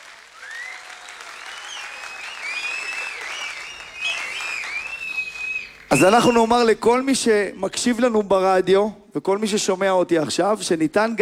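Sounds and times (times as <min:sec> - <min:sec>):
crowd applauding: 0:00.0 - 0:06.7
whistles and cheers: 0:00.0 - 0:06.7
speech: 0:05.9 - 0:11.2.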